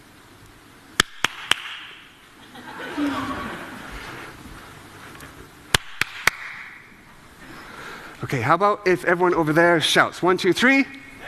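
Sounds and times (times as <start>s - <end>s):
hands clapping: 1.0s - 2.0s, 5.7s - 6.8s
laughter: 2.4s - 4.2s
speech: 8.3s - 11.0s.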